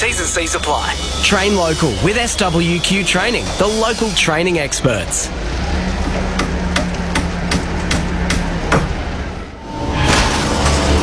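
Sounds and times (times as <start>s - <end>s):
speech: 0.0s - 5.9s
gearbox failing with loud mechanical crash: 4.8s - 11.0s.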